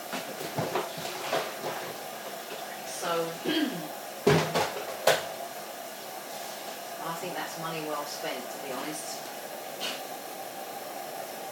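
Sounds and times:
low steady hum: 0.0s - 11.5s
door knocks as it swings and bumps: 4.2s - 5.2s
speech: 7.2s - 10.0s.

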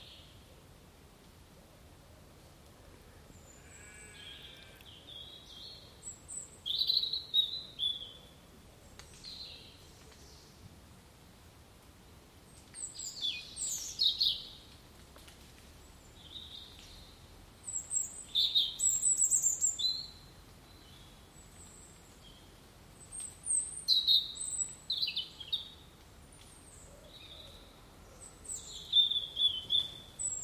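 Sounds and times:
birdsong at Seckley viewpoint: 3.2s - 10.6s, 16.0s - 30.4s.

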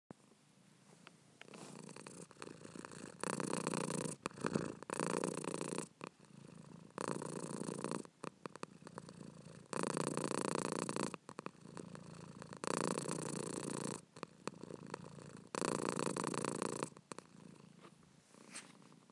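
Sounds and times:
purring: 1.4s - 17.8s.

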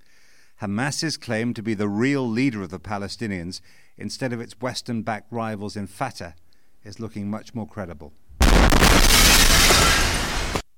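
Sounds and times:
speech: 0.6s - 9.2s
nearby air strike blast close to a hotel: 8.4s - 10.6s.

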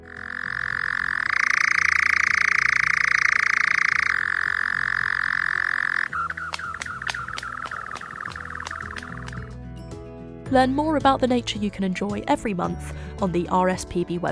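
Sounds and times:
camouflaged nocturnal bird chirring song: 0.0s - 9.5s
speech: 10.5s - 14.3s.

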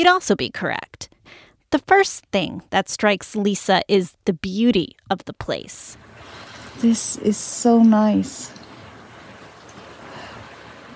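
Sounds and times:
speech: 0.0s - 8.6s
ocean waves breaking on rocky shore: 8.7s - 10.9s.

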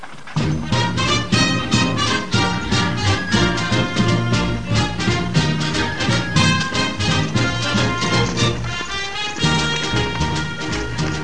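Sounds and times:
fanfare: 0.4s - 11.2s.

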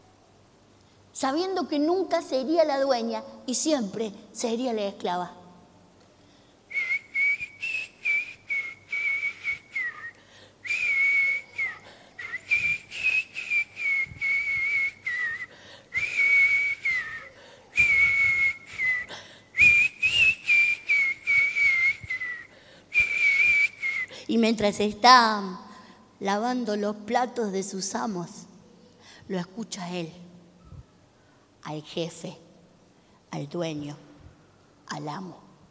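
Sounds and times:
speech: 1.2s - 5.4s, 24.4s - 25.6s, 26.2s - 28.4s, 29.3s - 30.2s, 31.6s - 32.4s, 33.3s - 34.0s, 34.9s - 35.4s
person whistling a slow melody: 6.7s - 24.1s.

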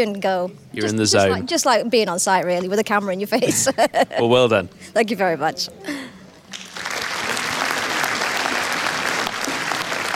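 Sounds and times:
speech: 0.0s - 6.1s
audience applause: 6.5s - 10.1s.

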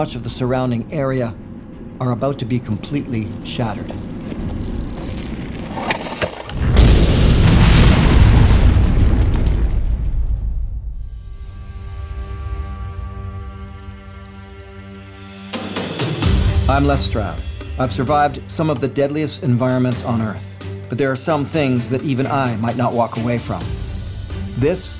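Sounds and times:
speech: 0.0s - 1.4s, 2.0s - 4.6s, 16.7s - 23.9s, 24.6s - 24.9s
Opau explosion boom: 6.5s - 13.0s.

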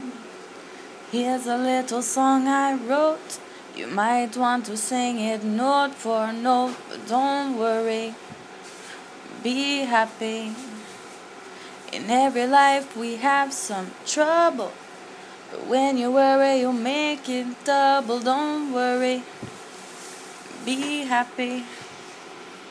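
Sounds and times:
short a cappella singing: 1.1s - 8.2s, 9.3s - 11.0s, 11.9s - 14.8s, 15.5s - 19.3s, 20.5s - 21.8s.

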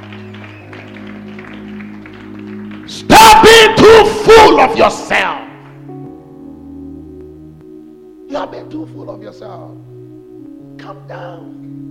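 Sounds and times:
audience clapping: 0.0s - 3.5s
speech: 2.9s - 5.4s, 8.5s - 9.9s, 10.8s - 11.8s.

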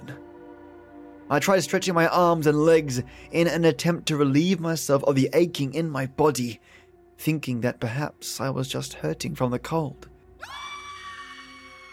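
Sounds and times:
speech: 1.3s - 10.6s
high-pitched scream: 10.4s - 11.9s.

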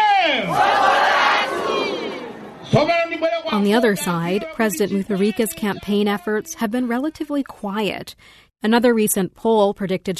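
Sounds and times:
large crowd of campaign supporters cheering and shouting: 0.0s - 3.3s
speech: 2.8s - 10.1s.

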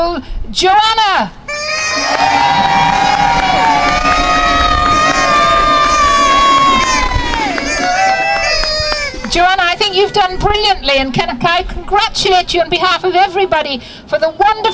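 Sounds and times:
speech: 0.2s - 1.4s, 10.0s - 14.7s
crowd cheering: 1.7s - 9.8s.

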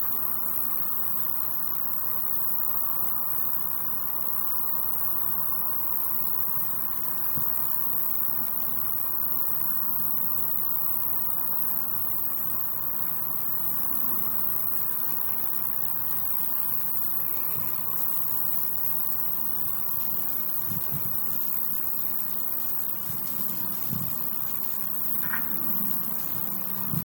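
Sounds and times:
grasshoppers chirping: 0.0s - 27.0s.

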